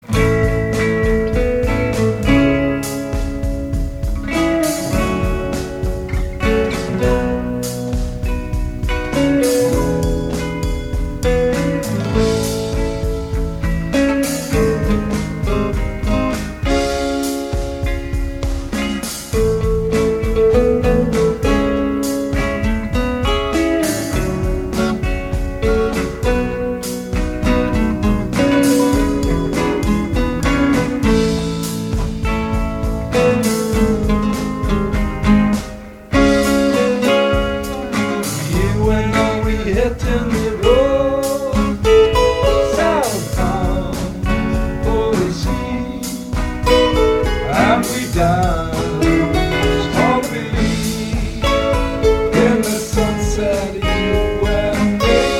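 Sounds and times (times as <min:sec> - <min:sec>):
drums: 0:00.0 - 0:55.3.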